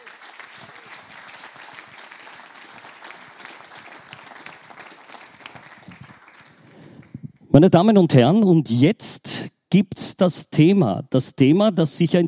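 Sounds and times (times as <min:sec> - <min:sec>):
audience applause: 0:00.0 - 0:07.2
speech: 0:07.6 - 0:12.2.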